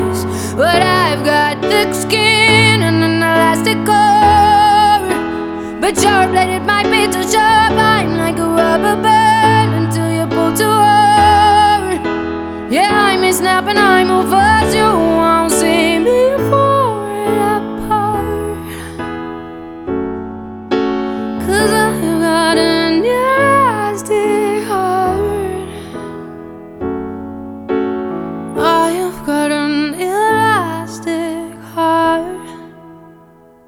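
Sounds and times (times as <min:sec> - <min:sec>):
piano music: 0:00.0 - 0:33.6.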